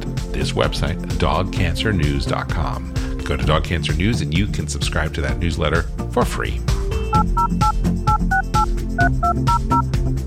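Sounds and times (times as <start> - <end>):
loud continuous low musical backing: 0.0 - 10.2
speech: 0.3 - 7.8, 9.0 - 9.9
telephone touch-tone dialing beeps: 7.2 - 9.8.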